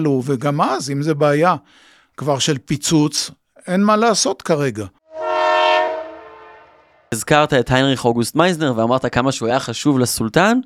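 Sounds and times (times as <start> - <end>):
speech: 0.0 - 5.0, 7.1 - 10.6
train horn blast: 5.0 - 7.1.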